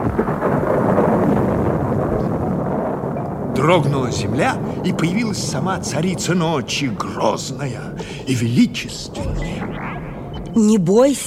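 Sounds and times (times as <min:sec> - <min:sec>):
thunder clap: 0:00.0 - 0:11.2
speech: 0:03.6 - 0:09.7, 0:10.6 - 0:11.2.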